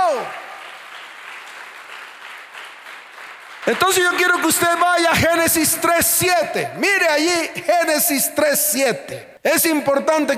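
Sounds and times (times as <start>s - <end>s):
audience applause: 0.0s - 5.4s
speech: 3.7s - 10.3s.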